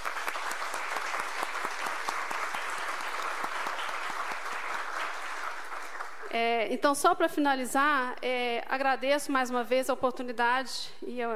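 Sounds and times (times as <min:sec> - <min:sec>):
audience applause: 0:00.0 - 0:06.4
speech: 0:06.3 - 0:11.3.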